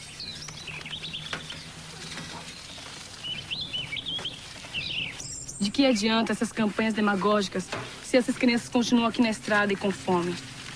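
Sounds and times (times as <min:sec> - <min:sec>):
small bird chirping as it is released: 0:00.0 - 0:08.6
speech: 0:05.6 - 0:10.5.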